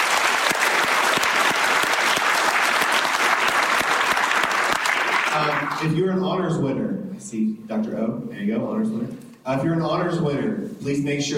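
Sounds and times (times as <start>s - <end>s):
audience applause: 0.0s - 5.9s
speech: 5.4s - 11.3s.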